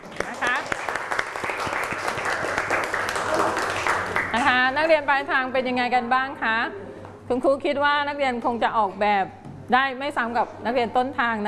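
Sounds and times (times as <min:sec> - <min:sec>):
students applauding: 0:00.0 - 0:04.5
speech: 0:04.9 - 0:11.4.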